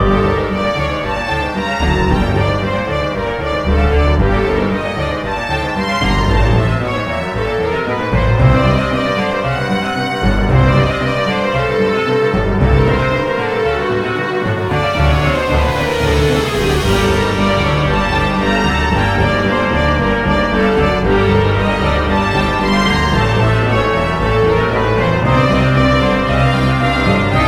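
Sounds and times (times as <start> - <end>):
pizzicato strings: 0.0 - 27.4.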